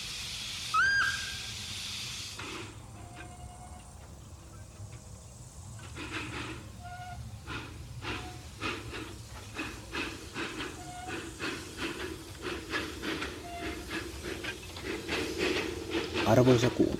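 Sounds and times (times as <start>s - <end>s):
small steam locomotive chuffing: 0.0s - 16.9s
speech: 16.3s - 16.9s.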